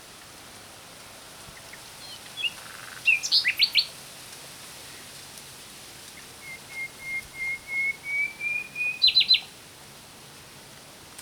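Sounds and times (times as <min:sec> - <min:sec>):
common nightingale Luscinia megarhynchos singing: 0:02.0 - 0:03.9, 0:06.4 - 0:09.5.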